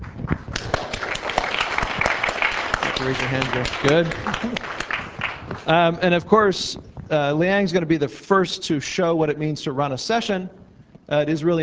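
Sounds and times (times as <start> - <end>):
scattered applause for conference coordinators: 0.0 - 5.7
speech: 3.0 - 4.9, 5.6 - 11.6.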